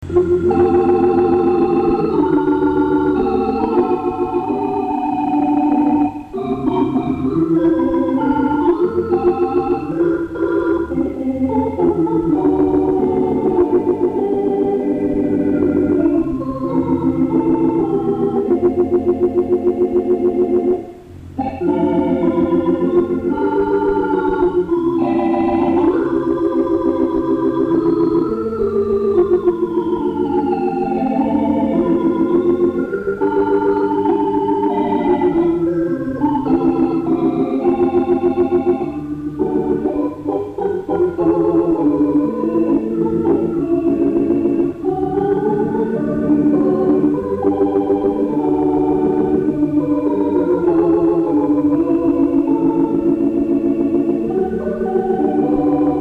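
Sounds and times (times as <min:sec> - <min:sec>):
organ: 0:00.0 - 0:55.9.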